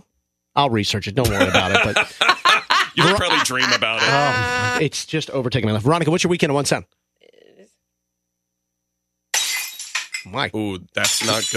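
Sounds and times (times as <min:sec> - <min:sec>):
speech: 0:00.6 - 0:07.0, 0:10.3 - 0:11.5
laughter: 0:01.2 - 0:04.8
glass shattering: 0:09.3 - 0:10.3, 0:11.0 - 0:11.5.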